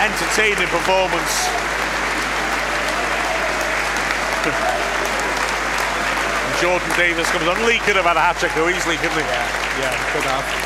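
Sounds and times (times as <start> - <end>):
speech: 0.0 - 1.8, 4.4 - 5.0, 6.6 - 10.6
Wrexham football fans applauding: 0.0 - 10.6.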